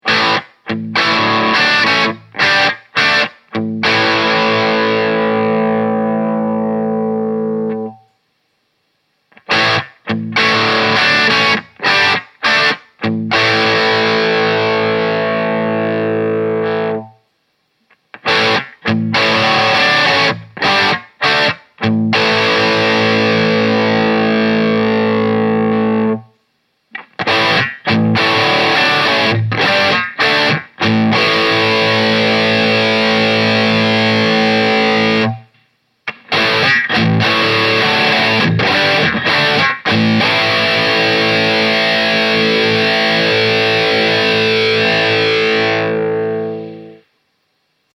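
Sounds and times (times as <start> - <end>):
crunch tube amp stages: 0.0 - 8.1, 9.2 - 47.2.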